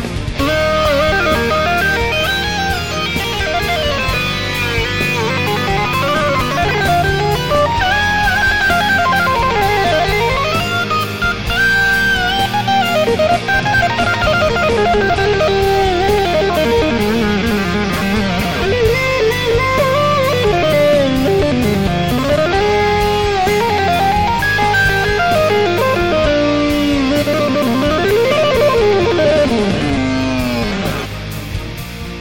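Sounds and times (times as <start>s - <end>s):
keyboard solo: 0.2s - 31.5s.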